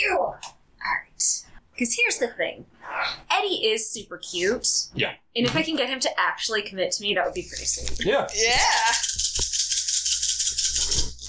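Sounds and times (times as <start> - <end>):
speech: 1.8 - 9.5
dice dropped on a hard floor: 8.6 - 11.2.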